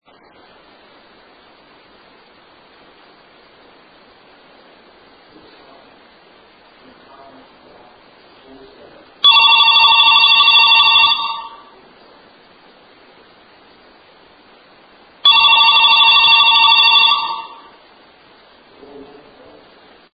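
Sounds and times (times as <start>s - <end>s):
court house phone: 9.2s - 11.8s, 15.2s - 17.8s.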